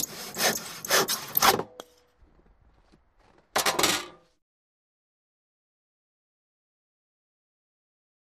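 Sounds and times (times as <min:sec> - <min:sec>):
hand saw sawing: 0:00.0 - 0:01.9.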